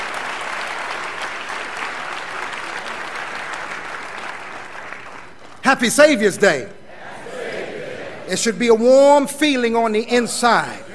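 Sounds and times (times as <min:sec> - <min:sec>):
large audience applause: 0:00.0 - 0:05.7
speech: 0:05.7 - 0:06.8, 0:08.3 - 0:10.9.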